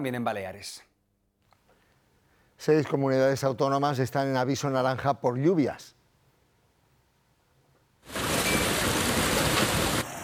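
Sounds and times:
speech: 0.0 - 0.9, 2.6 - 6.0
hail falling in Talavera de la Reina: 8.1 - 10.1.

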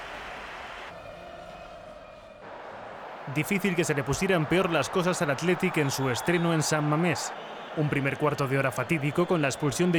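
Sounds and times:
stadium crowd whistling at San Mamés: 0.0 - 9.9
stadium crowd applauding at San Mamés: 2.4 - 9.9
speech: 3.3 - 9.9.

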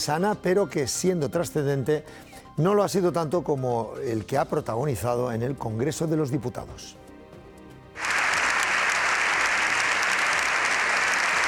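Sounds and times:
speech: 0.0 - 7.0
long applause from a large audience: 8.0 - 11.4.

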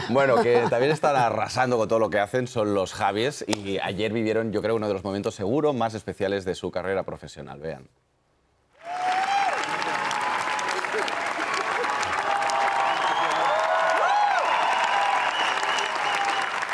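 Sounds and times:
speech: 0.1 - 8.1
cheering voices: 8.8 - 16.7
crowd applauding: 8.8 - 16.7
whistles: 12.6 - 16.6.

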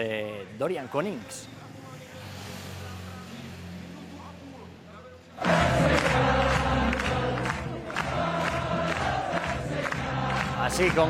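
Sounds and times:
speech: 0.0 - 1.6, 10.7 - 11.0
Dutch crowd cheering golfer Carlota Ciganda at the Solheim Cup: 5.4 - 11.0.

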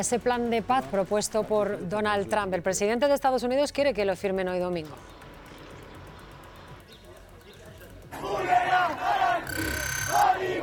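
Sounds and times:
speech: 0.0 - 5.2
crowd protesting in city streets: 8.1 - 10.6
high electronic whine: 9.5 - 10.2.

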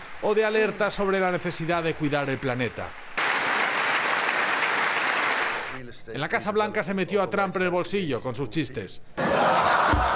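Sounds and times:
applause in the US Congress for a speech by King Charles: 0.0 - 5.8
speech: 0.2 - 3.0, 5.9 - 9.7
laughter: 9.2 - 10.1.

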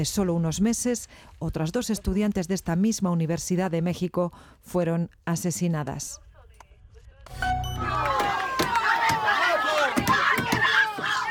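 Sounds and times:
speech: 0.0 - 6.3, 7.3 - 7.6
angry crowd shouting: 7.8 - 11.2
sharp knocks and bangs: 9.9 - 11.2.

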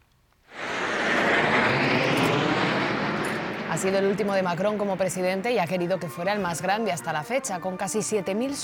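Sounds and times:
military aircraft roaring overhead during parade: 0.5 - 7.2
speech: 3.8 - 8.6.

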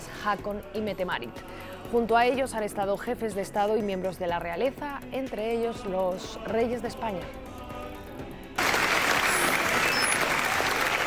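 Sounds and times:
speech: 0.2 - 7.5
audience ovation applause: 8.6 - 11.0.

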